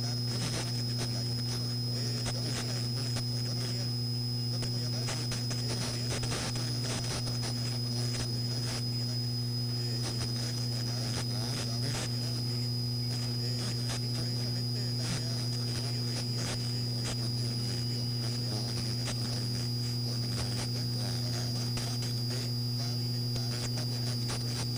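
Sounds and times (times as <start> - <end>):
AM radio static: 0.0 - 24.7.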